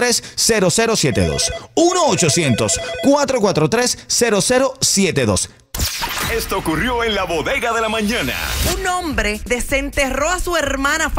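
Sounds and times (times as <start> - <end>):
speech: 0.0 - 11.1
telephone ringing after a toll-free number is dialed: 1.1 - 3.3.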